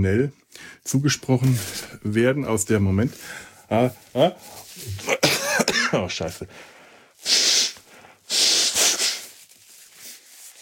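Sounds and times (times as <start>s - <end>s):
speech: 0.0s - 5.2s, 5.9s - 7.4s
sniffing up mucus into the sinuses: 7.2s - 9.4s.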